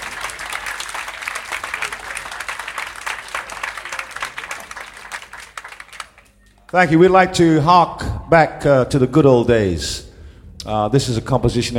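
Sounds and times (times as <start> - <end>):
audience applause welcoming an alto saxophonist to a jazz bandstand: 0.0 - 7.0
speech: 6.7 - 10.0, 10.6 - 11.7.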